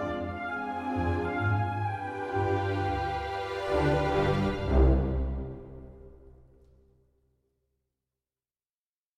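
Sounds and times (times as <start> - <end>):
evening waltz music: 0.0 - 6.8.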